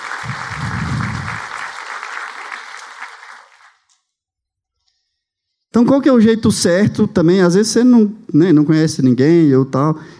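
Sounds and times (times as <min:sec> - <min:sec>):
audience applause: 0:00.0 - 0:03.9
speech: 0:05.8 - 0:10.1.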